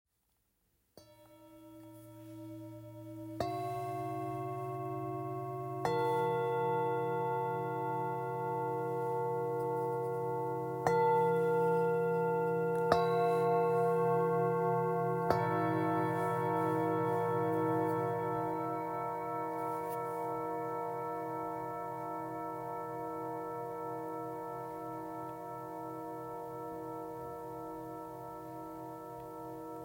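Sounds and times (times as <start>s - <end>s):
Tibetan singing bowls: 1.0s - 29.8s.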